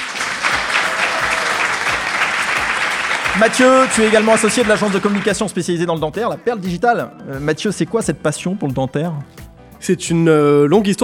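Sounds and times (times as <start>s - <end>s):
audience applause: 0.0s - 5.5s
speech: 3.4s - 11.0s.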